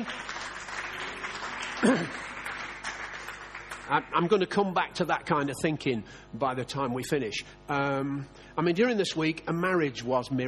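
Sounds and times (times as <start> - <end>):
audience applauding: 0.0 - 4.6
speech: 1.8 - 2.3, 3.9 - 10.4.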